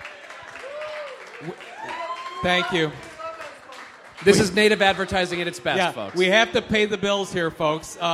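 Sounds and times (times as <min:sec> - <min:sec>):
audience applause: 0:00.0 - 0:06.9
whoop or whistle: 0:00.6 - 0:02.9
speech: 0:01.4 - 0:03.1, 0:04.2 - 0:08.1.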